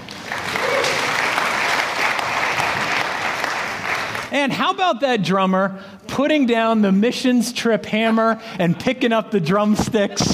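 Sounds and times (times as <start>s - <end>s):
audience clapping for the band: 0.0s - 4.3s
speech: 4.3s - 10.3s.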